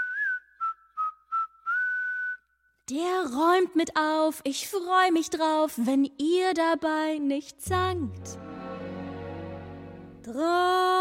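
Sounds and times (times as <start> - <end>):
person whistling a simple tune: 0.0 - 2.7
speech: 2.9 - 8.4, 10.3 - 10.9.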